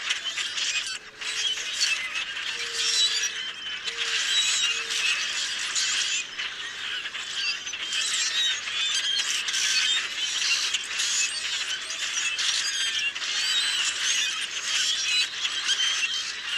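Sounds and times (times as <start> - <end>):
common grackle calling: 0.0 - 16.5.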